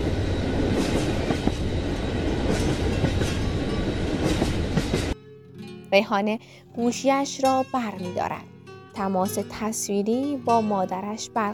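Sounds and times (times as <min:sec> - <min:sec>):
train rumbling on rails: 0:00.0 - 0:05.2
speech: 0:05.9 - 0:11.5.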